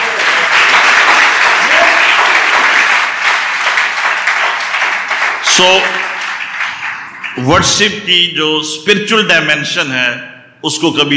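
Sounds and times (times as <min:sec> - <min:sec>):
audience clapping: 0:00.0 - 0:07.9
speech: 0:05.6 - 0:06.1, 0:07.4 - 0:11.1.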